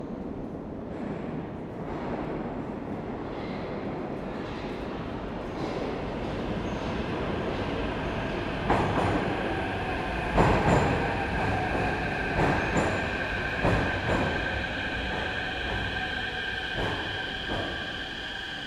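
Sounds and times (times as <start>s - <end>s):
subway train arriving at platform: 0.2s - 18.6s
subway train departing from platform: 4.1s - 18.6s.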